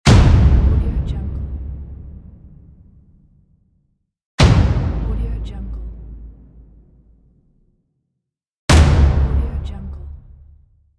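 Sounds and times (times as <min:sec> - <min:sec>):
boom: 0:00.1 - 0:03.6, 0:04.4 - 0:07.6, 0:08.7 - 0:10.6.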